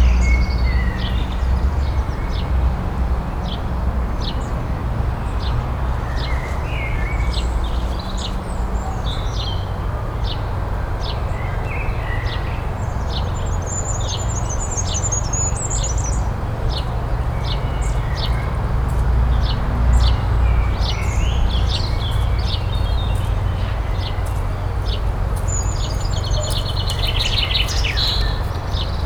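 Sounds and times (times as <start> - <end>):
low rumble of traffic: 0.0 - 29.0
birds chirping and twittering: 19.4 - 29.0.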